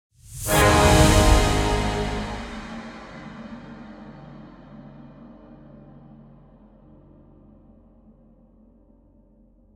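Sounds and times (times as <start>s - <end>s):
combat music ending layer: 0.4s - 3.2s.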